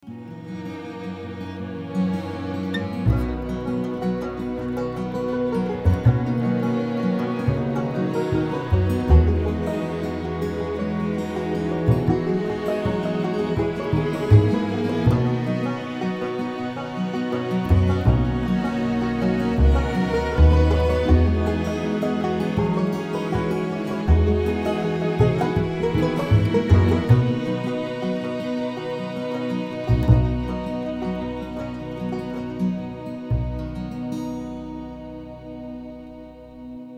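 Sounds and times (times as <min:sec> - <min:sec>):
pizzicato bass ending: 0:00.0 - 0:36.9.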